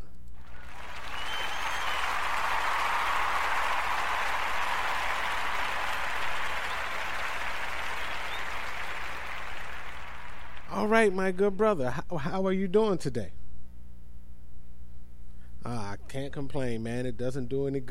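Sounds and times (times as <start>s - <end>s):
audience applause: 0.4s - 11.1s
speech: 10.8s - 13.4s, 15.6s - 17.8s.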